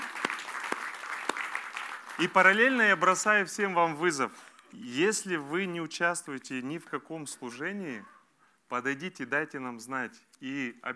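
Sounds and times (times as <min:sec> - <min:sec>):
audience applause: 0:00.0 - 0:03.2
speech: 0:02.2 - 0:10.9.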